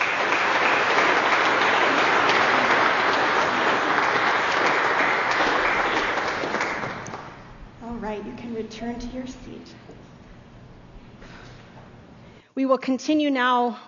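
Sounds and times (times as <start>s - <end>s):
audience applause: 0.0s - 7.5s
speech: 8.6s - 10.1s, 12.6s - 13.8s.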